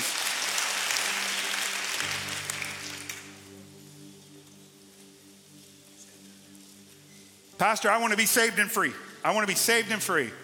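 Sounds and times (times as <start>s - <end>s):
audience clapping hands: 0.0s - 3.5s
speech: 7.6s - 10.4s.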